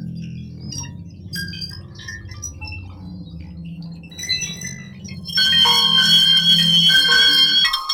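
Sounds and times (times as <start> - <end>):
siren: 5.2 - 7.9.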